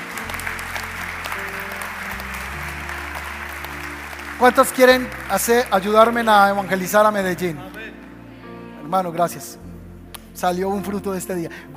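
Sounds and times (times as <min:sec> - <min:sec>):
audience applause: 0:00.0 - 0:08.1
low organ or keyboard chords: 0:00.0 - 0:11.7
speech: 0:04.4 - 0:07.7, 0:08.9 - 0:09.6, 0:10.4 - 0:11.7.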